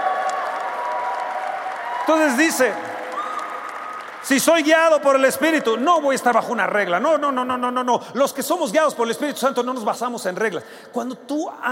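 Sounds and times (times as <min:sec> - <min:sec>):
audience applause: 0:00.0 - 0:05.8
speech: 0:02.1 - 0:03.0, 0:04.2 - 0:11.7.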